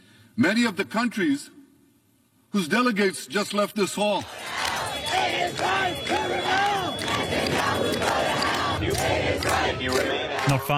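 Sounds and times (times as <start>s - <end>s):
speech: 0.4s - 1.6s, 2.5s - 4.6s, 9.8s - 10.7s
large protest crowd shouting and chanting: 4.2s - 10.7s.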